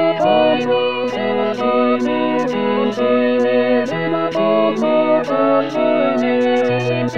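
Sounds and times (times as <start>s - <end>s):
orchestra playing tutti: 0.2s - 7.1s.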